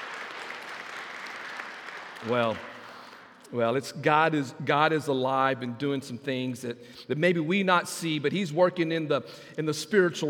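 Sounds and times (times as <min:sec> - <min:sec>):
audience clapping: 0:00.0 - 0:03.5
speech: 0:02.2 - 0:02.7, 0:03.5 - 0:10.2.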